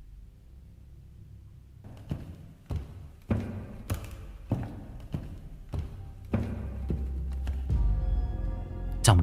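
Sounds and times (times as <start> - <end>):
heavy footsteps: 1.8 - 8.1.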